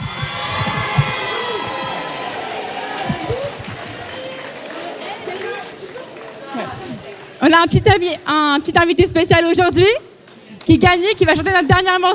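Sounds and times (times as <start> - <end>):
crowd cheering and applauding: 0.0 - 7.4
speech: 7.4 - 10.1, 10.7 - 12.1.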